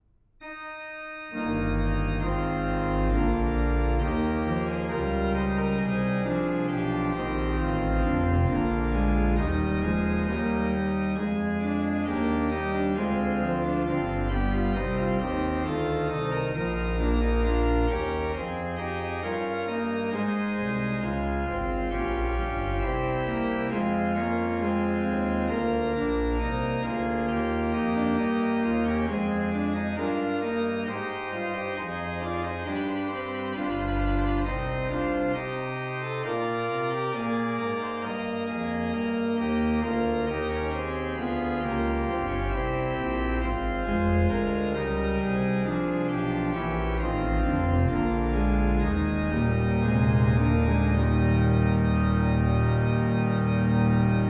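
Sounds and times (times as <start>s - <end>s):
organ chorale: 0.4s - 54.2s.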